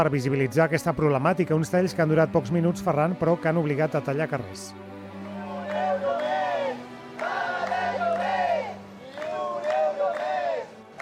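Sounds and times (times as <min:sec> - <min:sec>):
speech: 0:00.0 - 0:05.0
protesters chanting slogans for housing protection: 0:05.2 - 0:11.0.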